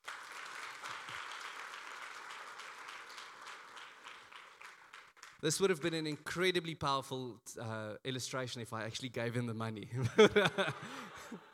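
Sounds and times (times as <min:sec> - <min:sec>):
round of applause: 0:00.0 - 0:05.9
speech: 0:05.4 - 0:11.5
laughter: 0:10.0 - 0:11.5.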